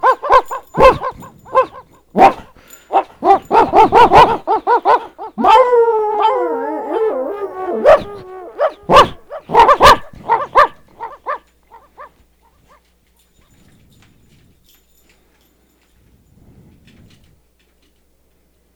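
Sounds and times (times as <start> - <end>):
barking: 0.0 - 12.8.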